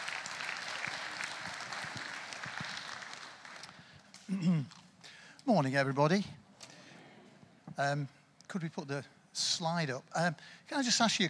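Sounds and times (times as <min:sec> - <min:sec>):
church congregation applause welcoming a speaker: 0:00.0 - 0:04.0
speech: 0:04.3 - 0:04.8, 0:05.5 - 0:06.4, 0:07.8 - 0:11.2.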